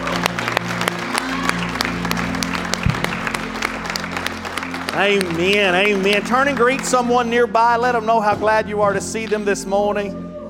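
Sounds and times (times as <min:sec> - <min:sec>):
audience hand clap applause: 0:00.0 - 0:07.6
speech: 0:05.0 - 0:10.2.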